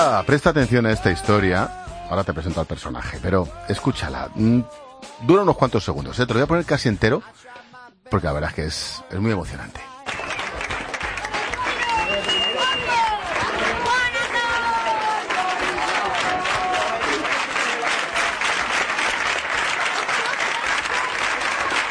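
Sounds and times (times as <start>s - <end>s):
speech: 0.0s - 9.9s
applause in school corridors: 9.9s - 21.8s.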